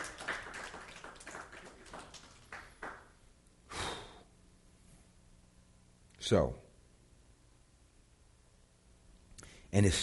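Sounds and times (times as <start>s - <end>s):
crowd applauding: 0.0s - 3.1s
speech: 6.2s - 6.6s, 9.7s - 10.0s.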